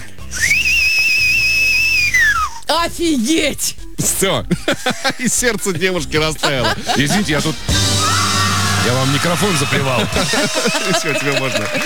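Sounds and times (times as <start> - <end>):
loud human whistle imitating a legendary robber: 0.3 - 2.6
speech: 2.7 - 7.9, 8.8 - 11.8
laughter: 4.5 - 7.8, 8.8 - 11.8.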